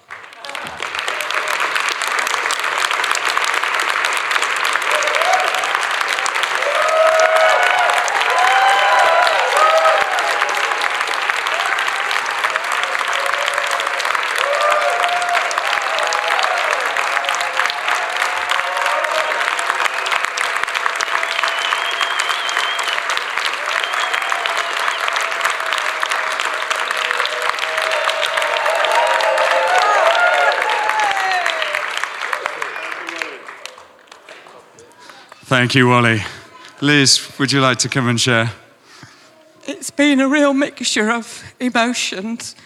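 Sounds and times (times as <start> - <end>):
large crowd applauding: 0.0 - 38.6
faint cheers and voices: 4.8 - 37.6
speech: 35.6 - 38.6, 40.0 - 42.6.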